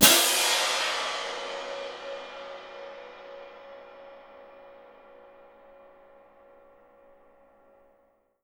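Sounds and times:
cymbal played mezzo forte: 0:00.0 - 0:06.6.

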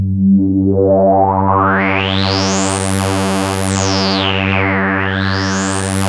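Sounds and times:
ARP 2600 synthesizer: 0:00.0 - 0:06.0.

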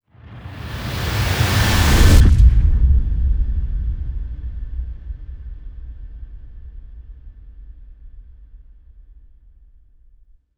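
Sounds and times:
impact noise into sub bass: 0:01.8 - 0:10.1.

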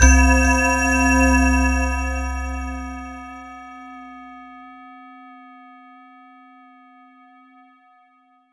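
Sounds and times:
Roland JV 2080 jungle brass synth note C1: 0:00.0 - 0:03.7.

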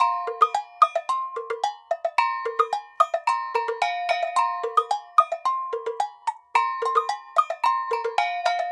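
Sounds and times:
African bell ensemble: 0:00.0 - 0:08.7.

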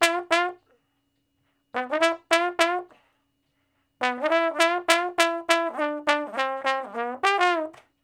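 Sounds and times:
trombone shuffle in G: 0:00.0 - 0:00.6, 0:01.8 - 0:03.0, 0:04.0 - 0:07.8.

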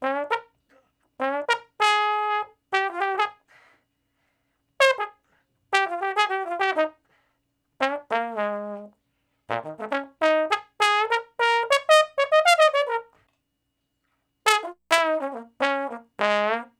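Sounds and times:
trombone in B flat: 0:00.0 - 0:00.6, 0:01.2 - 0:03.4, 0:04.8 - 0:07.0, 0:07.8 - 0:13.2, 0:14.4 - 0:16.7.

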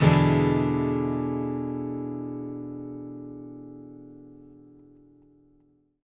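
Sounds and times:
acoustic guitar seventh chord: 0:00.0 - 0:05.1.

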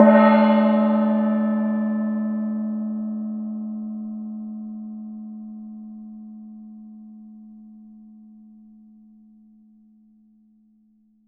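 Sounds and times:
Tibetan gong: 0:00.0 - 0:07.1.

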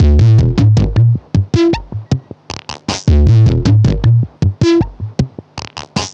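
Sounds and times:
modular synth loop: 0:00.0 - 0:05.7.

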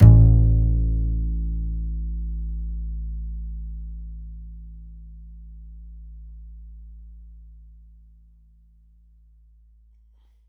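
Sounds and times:
upright acoustic bass A note: 0:00.0 - 0:04.8.

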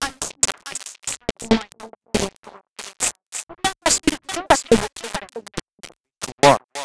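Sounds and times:
envelope beat: 0:00.0 - 0:05.5.

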